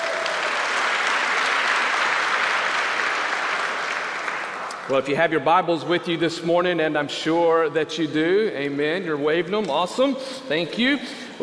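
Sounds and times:
audience hand clap of praise: 0.0s - 4.9s
speech: 4.9s - 11.4s.

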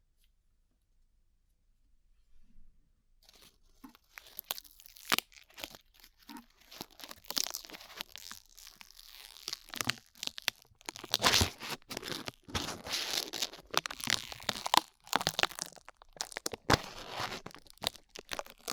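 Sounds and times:
glue being peeled off ears: 4.1s - 18.7s.

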